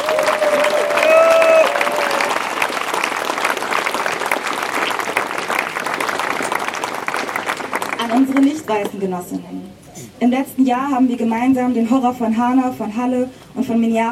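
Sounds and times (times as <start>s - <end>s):
audience applause: 0.0s - 8.9s
speech: 8.4s - 14.1s.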